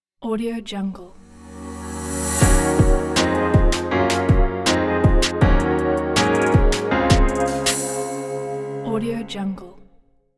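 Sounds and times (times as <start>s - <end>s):
chill beat logo music: 1.8s - 8.8s.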